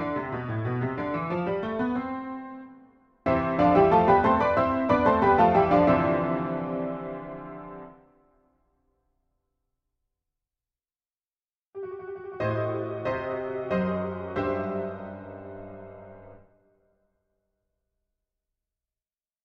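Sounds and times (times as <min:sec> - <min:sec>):
piano pieces: 0:00.0 - 0:08.1, 0:11.8 - 0:16.5.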